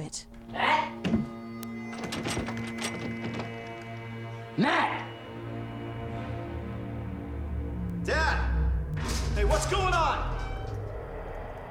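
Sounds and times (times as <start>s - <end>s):
speech: 0.1s - 1.1s, 4.6s - 5.0s
knocks and rattles: 1.0s - 4.1s
door slamming shut: 1.9s - 3.7s
low hum: 5.4s - 11.6s.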